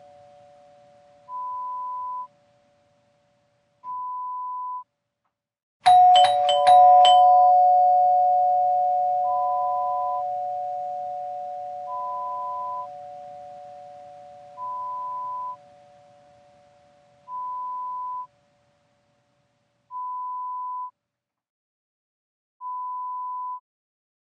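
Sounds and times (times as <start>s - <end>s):
doorbell: 5.8s - 16.1s.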